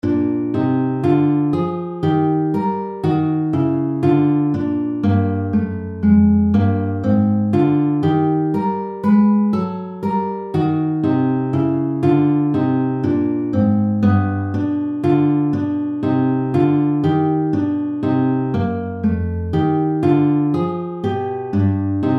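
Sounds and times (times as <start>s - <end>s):
intervalic blues in B-flat: 0.0s - 22.1s.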